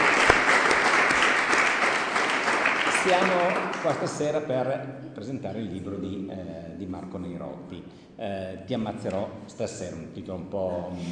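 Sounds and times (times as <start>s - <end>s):
audience applause: 0.0s - 4.2s
speech: 3.0s - 11.1s.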